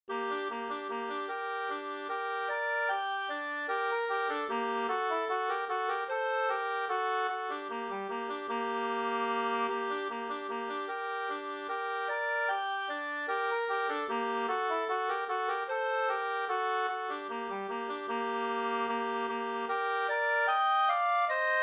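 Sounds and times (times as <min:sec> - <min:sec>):
waltz music: 0:00.1 - 0:21.6.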